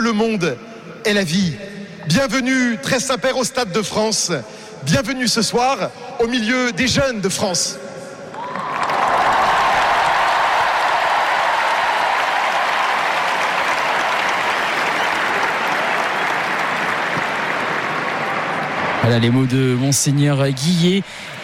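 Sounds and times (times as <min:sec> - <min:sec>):
speech: 0:00.0 - 0:07.9, 0:19.1 - 0:21.4
large stadium crowd applauding: 0:08.3 - 0:21.4.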